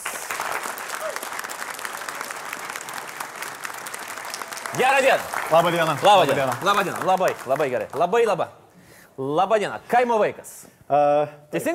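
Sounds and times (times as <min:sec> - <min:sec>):
audience applauding a comedian's entrance: 0:00.0 - 0:08.3
speech: 0:04.7 - 0:08.6, 0:09.2 - 0:11.7.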